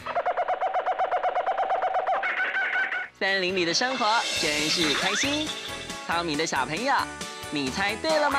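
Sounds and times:
monkey calling loudly in forest: 0.0 - 3.1
speech: 3.2 - 8.3.

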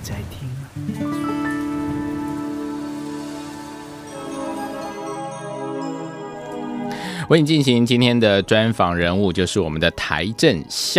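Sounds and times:
rain falling: 0.0 - 6.8
sustained layered musical tones: 0.8 - 10.6
speech: 7.3 - 10.9.

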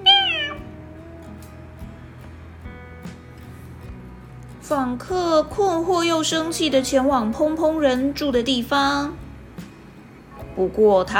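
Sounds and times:
cat meowing: 0.0 - 0.6
speech: 4.7 - 9.2, 10.6 - 11.1.

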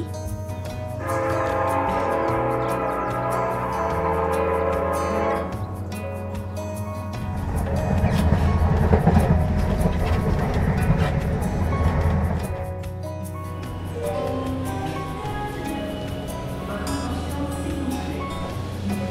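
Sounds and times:
train running: 0.0 - 19.0.

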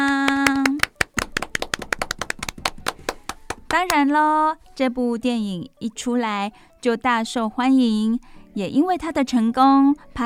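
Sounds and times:
hand clapping: 0.0 - 4.0
speech: 3.8 - 10.2.

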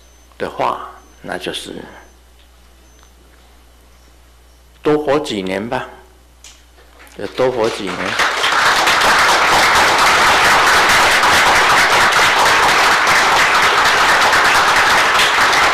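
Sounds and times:
speech: 0.4 - 2.1, 4.9 - 6.0, 7.2 - 8.3
audience applause: 7.3 - 15.7.

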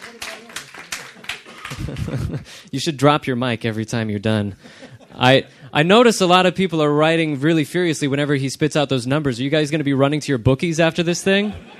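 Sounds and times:
audience clapping: 0.0 - 2.4
laughter: 0.0 - 2.6, 4.6 - 5.6, 11.4 - 11.7
speech: 1.8 - 11.7.

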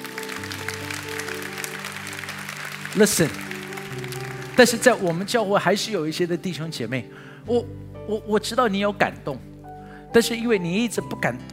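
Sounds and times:
audience applause: 0.0 - 5.8
speech: 3.0 - 3.4, 4.6 - 9.5, 10.1 - 11.5.

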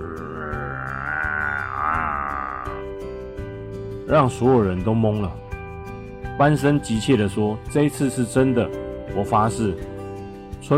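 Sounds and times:
low growling roar in distance: 0.0 - 2.9
speech: 4.1 - 5.4, 6.4 - 9.9.

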